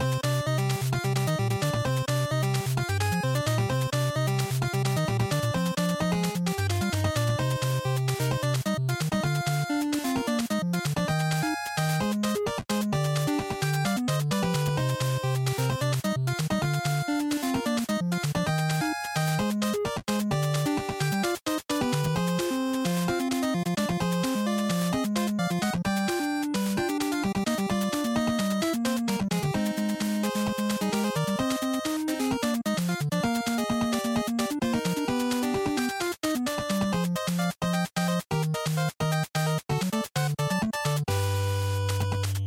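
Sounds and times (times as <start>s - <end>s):
action stage background music loop: 0.0s - 42.4s.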